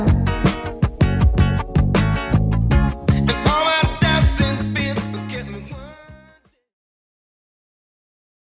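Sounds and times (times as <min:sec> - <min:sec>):
90s style drum beat: 0:00.0 - 0:05.2.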